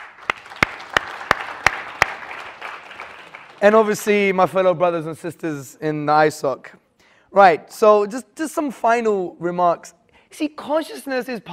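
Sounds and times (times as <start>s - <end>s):
audience applause: 0.0s - 3.9s
speech: 3.6s - 11.5s.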